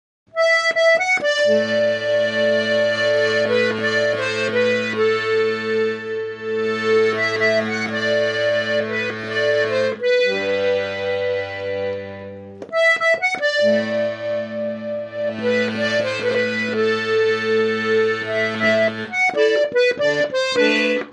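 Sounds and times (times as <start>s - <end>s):
gavotte dance music for a bal: 0.4s - 21.1s.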